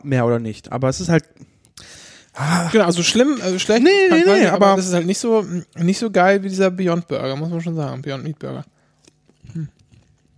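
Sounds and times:
speech: 0.0 - 8.8, 9.5 - 9.8
noisy chewing with lip smacking: 8.8 - 10.3.

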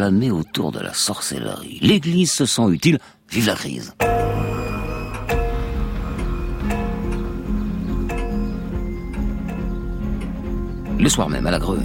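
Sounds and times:
speech: 0.0 - 4.6, 11.0 - 11.8
grandfather clock ticking: 4.0 - 11.8.

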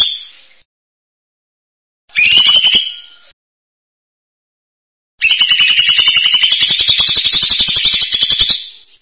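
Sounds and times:
bird song in buzzy trilled phrases: 2.1 - 3.4, 5.2 - 9.0.

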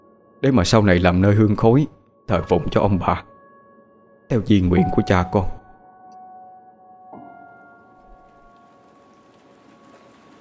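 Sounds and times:
speech: 0.4 - 3.3, 4.3 - 5.6
steady rain on a gloomy windy day: 8.1 - 10.4.

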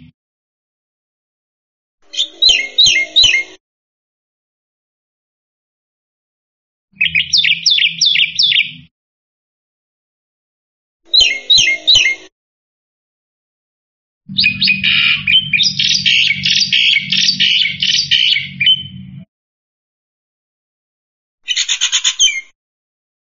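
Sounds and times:
black-winged myna chirping: 2.0 - 3.6, 7.0 - 8.9, 11.1 - 12.3, 14.3 - 19.2, 21.5 - 22.5.

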